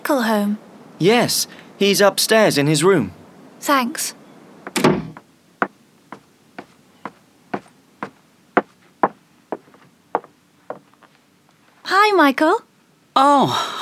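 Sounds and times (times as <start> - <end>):
speech: 0.1 - 4.2, 12.2 - 13.8
door opening: 4.7 - 5.3.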